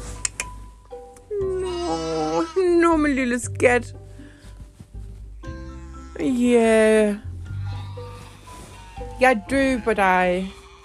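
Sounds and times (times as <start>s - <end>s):
lamb bleating: 1.4s - 2.8s, 5.5s - 6.6s, 7.5s - 10.8s
speech: 3.0s - 4.0s, 6.2s - 7.3s, 9.2s - 10.6s.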